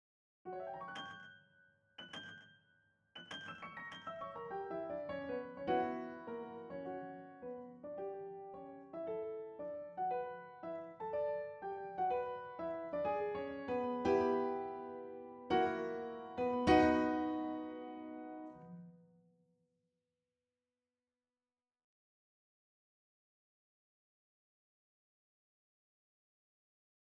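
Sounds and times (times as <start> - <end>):
piano: 0.5 - 2.6, 3.2 - 19.1.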